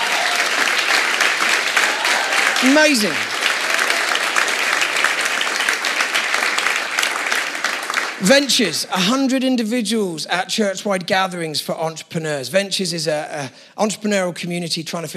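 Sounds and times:
audience applause: 0:00.0 - 0:08.8
speech: 0:02.6 - 0:03.3, 0:08.2 - 0:15.1.

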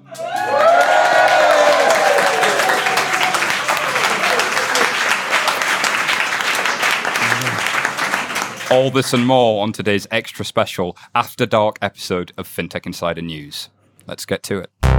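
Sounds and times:
cheers and whoops: 0:00.0 - 0:05.9
live audience applauding: 0:00.0 - 0:09.3
speech: 0:08.7 - 0:14.8.

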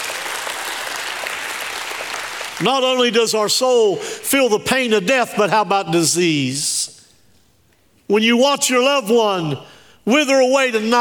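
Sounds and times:
audience applause: 0:00.0 - 0:02.6
speech: 0:02.6 - 0:07.0, 0:08.1 - 0:10.9.

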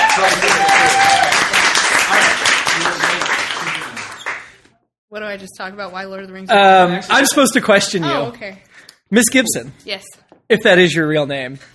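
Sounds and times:
audience applause: 0:00.0 - 0:04.6
speech: 0:05.4 - 0:11.7.

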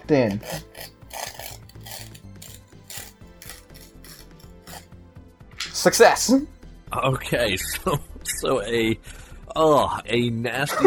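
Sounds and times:
speech: 0:00.1 - 0:00.9, 0:05.8 - 0:10.8
paper tearing: 0:00.4 - 0:04.9.

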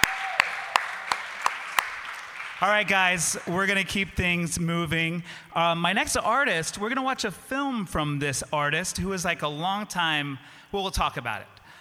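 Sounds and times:
audience applause: 0:00.0 - 0:04.3
speech: 0:02.6 - 0:11.6.

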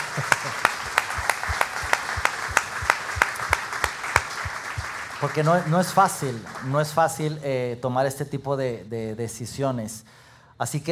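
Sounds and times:
laughter: 0:00.0 - 0:03.8
audience applause: 0:00.0 - 0:07.0
speech: 0:00.2 - 0:00.4, 0:05.2 - 0:10.9.

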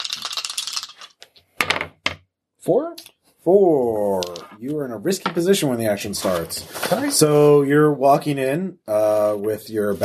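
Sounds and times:
two dice rattling and tumbling across a hard surface: 0:00.0 - 0:02.2, 0:04.2 - 0:04.6
speech: 0:02.6 - 0:10.0.

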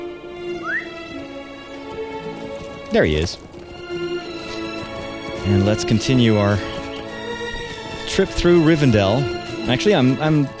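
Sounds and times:
rising whistle-like chirp summoning a horse in a video game: 0:00.6 - 0:01.0
speech: 0:02.9 - 0:03.5, 0:05.5 - 0:06.8, 0:08.2 - 0:10.5.

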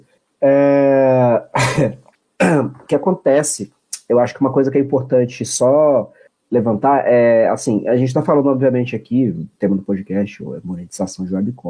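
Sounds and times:
speech: 0:00.4 - 0:01.0, 0:02.9 - 0:11.6
throat clearing: 0:01.5 - 0:02.8.

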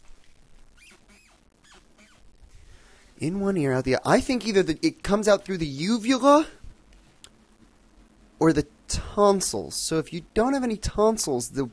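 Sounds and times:
squeaky floorboard: 0:00.7 - 0:02.3
speech: 0:03.2 - 0:06.6, 0:08.4 - 0:11.7.

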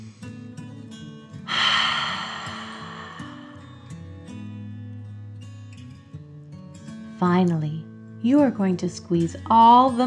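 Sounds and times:
deep breath in and out during a children's relaxation exercise: 0:01.5 - 0:04.2
speech: 0:07.2 - 0:10.0.

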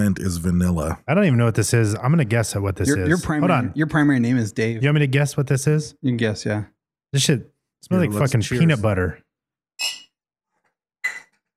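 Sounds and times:
speech: 0:00.0 - 0:09.2, 0:09.8 - 0:10.0
glasses clinking in a toast: 0:09.8 - 0:10.2, 0:11.0 - 0:11.4.

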